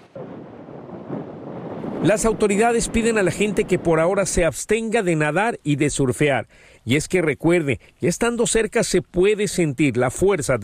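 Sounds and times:
strong coastal wind gusts: 0.0s - 4.9s
speech: 2.0s - 10.6s.

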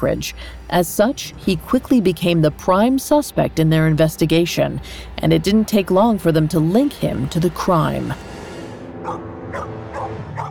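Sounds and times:
speech: 0.0s - 8.3s
bloodhounds barking: 9.0s - 10.4s.

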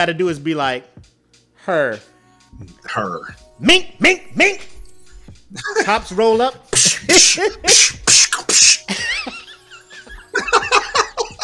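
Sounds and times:
speech: 0.0s - 4.8s, 5.5s - 9.4s
laughter: 5.6s - 6.0s, 8.9s - 11.4s
voice imitating old 70s kung fu movie fight noises: 6.8s - 8.9s.

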